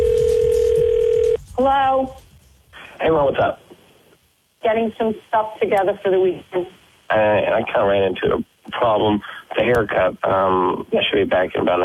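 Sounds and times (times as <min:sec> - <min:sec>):
telephone call signal tone: 0:00.0 - 0:01.4
speech: 0:01.6 - 0:02.3, 0:03.0 - 0:03.6, 0:04.6 - 0:11.8.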